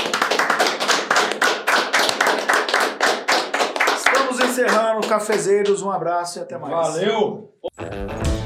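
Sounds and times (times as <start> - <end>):
round of applause: 0.0 - 5.8
speech: 4.6 - 8.3.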